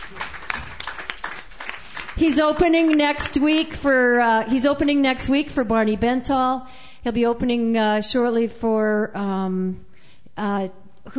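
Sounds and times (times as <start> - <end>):
audience applause: 0.0 - 3.6
speech: 2.2 - 11.1.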